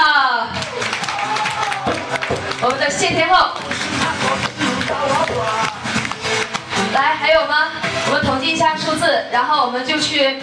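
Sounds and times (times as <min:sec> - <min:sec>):
audience applause: 0:00.5 - 0:06.8
speech: 0:02.9 - 0:05.7, 0:07.0 - 0:10.4.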